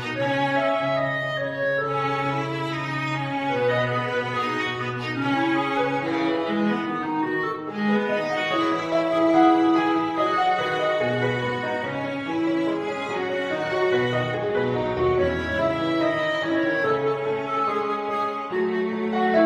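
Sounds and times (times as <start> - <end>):
clarinet: 0.0 - 19.4
viola: 0.0 - 19.4.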